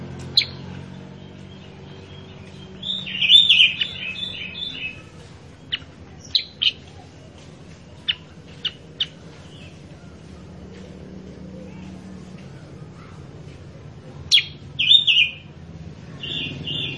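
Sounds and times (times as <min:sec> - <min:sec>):
Sooty-headed bulbul calls: 0:00.3 - 0:07.0, 0:14.3 - 0:15.5, 0:16.2 - 0:16.9.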